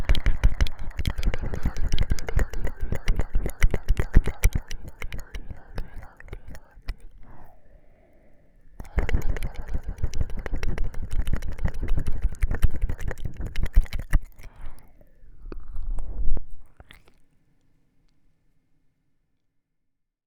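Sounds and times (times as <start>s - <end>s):
strong ear licking on the right side: 0.0s - 7.6s, 8.8s - 15.8s, 16.7s - 17.2s.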